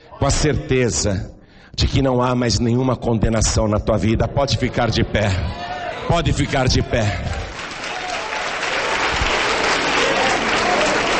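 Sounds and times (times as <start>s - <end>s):
speech: 0.2s - 7.4s
audience applause: 6.4s - 11.1s.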